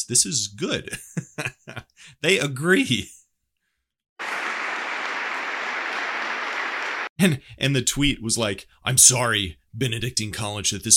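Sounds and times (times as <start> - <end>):
speech: 0.0 - 3.2, 7.2 - 10.9
crowd applauding: 4.2 - 7.1.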